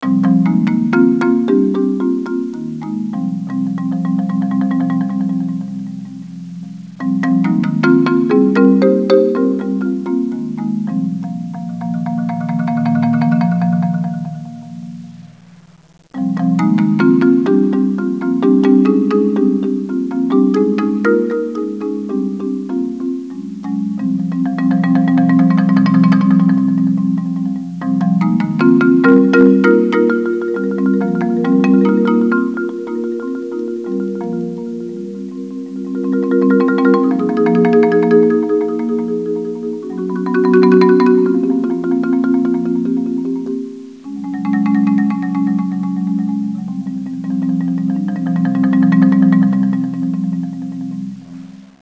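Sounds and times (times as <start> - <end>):
marimba: 0.0 - 51.8.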